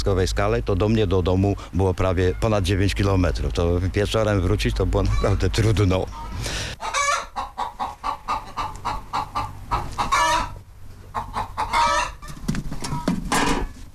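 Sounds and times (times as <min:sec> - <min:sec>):
speech: 0:00.0 - 0:06.9
several chickens clucking: 0:04.9 - 0:13.9.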